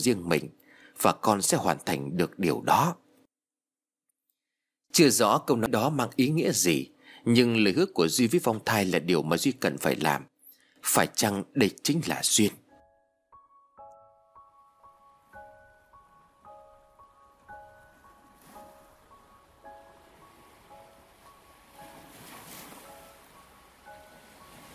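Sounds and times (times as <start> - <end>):
speech: 0.0 - 3.0, 4.9 - 12.6
ocean waves lapping on a beach: 17.5 - 24.7.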